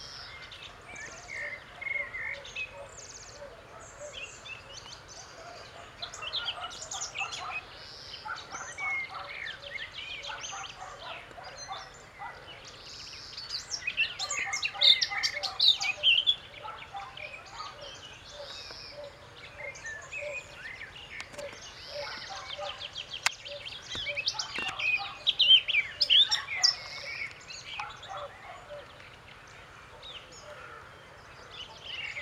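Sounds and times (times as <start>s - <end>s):
Eurasian blackcap song: 0.0s - 32.1s.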